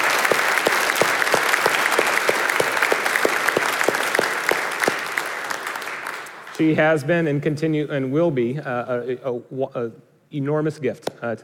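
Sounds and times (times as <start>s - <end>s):
audience clapping applause: 0.0s - 7.0s
speech: 6.6s - 11.4s.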